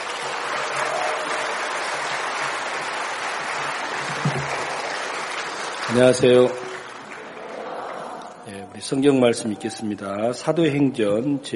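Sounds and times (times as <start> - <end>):
audience applause: 0.0 - 8.6
speech: 5.9 - 6.6, 8.8 - 11.5.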